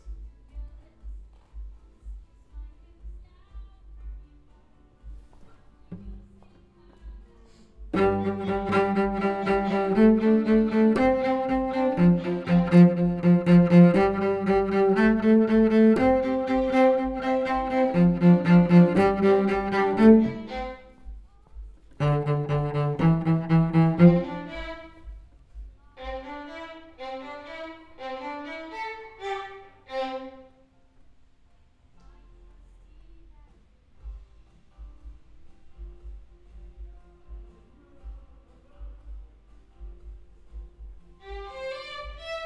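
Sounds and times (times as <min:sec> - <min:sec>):
cello: 0:05.1 - 0:21.3, 0:21.9 - 0:25.3, 0:25.9 - 0:30.8, 0:41.2 - 0:42.4.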